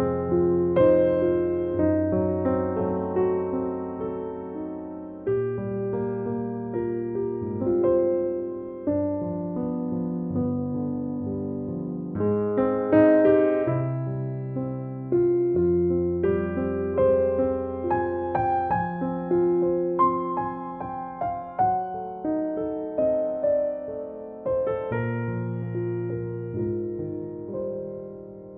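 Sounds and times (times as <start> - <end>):
piano in E flat: 0.0 - 28.5.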